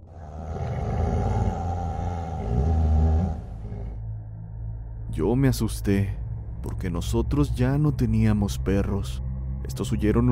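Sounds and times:
large animal growling: 0.0 - 4.0
speech: 5.2 - 10.2.

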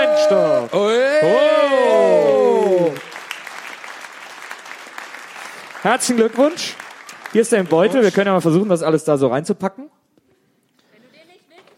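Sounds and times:
audience applause: 0.0 - 8.7
speech: 0.3 - 0.5, 5.8 - 10.0.

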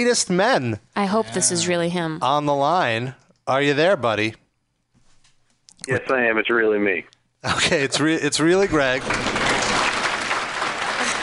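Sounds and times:
speech: 0.0 - 4.4, 5.8 - 9.3
studio audience applause: 8.6 - 11.2.

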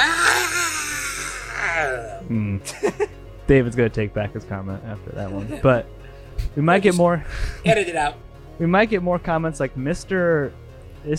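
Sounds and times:
man screaming, imitating someone falling off a roof: 0.0 - 2.2
speech: 2.3 - 11.1.

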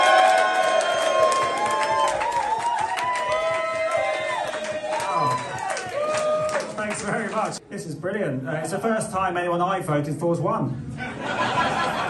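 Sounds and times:
crowd clapping: 0.0 - 7.6
speech: 7.5 - 10.8
laughter: 11.0 - 12.0.

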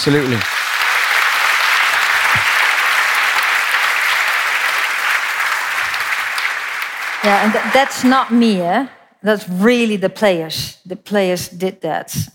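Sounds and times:
speech: 0.0 - 0.5, 7.2 - 12.3
audience applause: 0.0 - 8.9.

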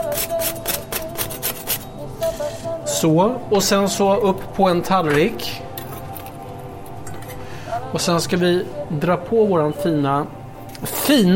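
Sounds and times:
knife or scraper scraping the burnt surface off grilled bread: 0.0 - 1.9
speech: 2.4 - 5.6, 7.9 - 11.3.

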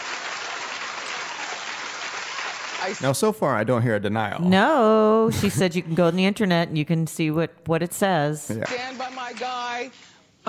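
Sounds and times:
crowd applauding: 0.0 - 3.3
speech: 2.8 - 10.4.

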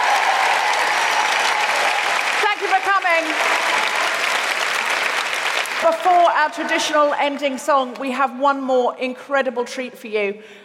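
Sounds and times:
audience applause: 0.0 - 6.3
speech: 5.8 - 10.6.

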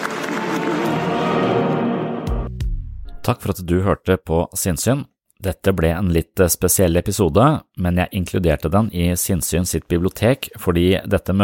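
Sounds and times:
audience applause: 0.0 - 2.4
downward sweeping musical tone: 0.0 - 2.5
speech: 3.3 - 11.4.

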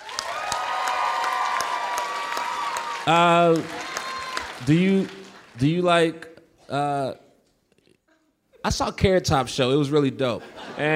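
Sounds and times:
audience applause: 0.0 - 6.1
speech: 3.1 - 3.8, 4.6 - 7.2, 8.6 - 10.9
laughter: 10.3 - 10.9.

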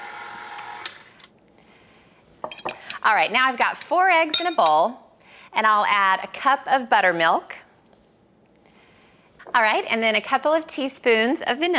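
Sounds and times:
electric mixer mixing chocolate cake batter: 0.0 - 1.1
speech: 3.0 - 7.6, 9.6 - 11.7.

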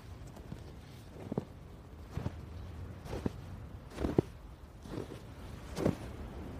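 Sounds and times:
snowshoes crunching through deep snow: 0.0 - 6.5.

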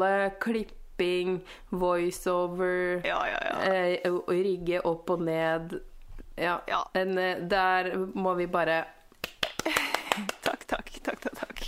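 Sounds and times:
speech: 0.0 - 9.4, 10.2 - 10.4
hand clapping: 9.2 - 11.4.

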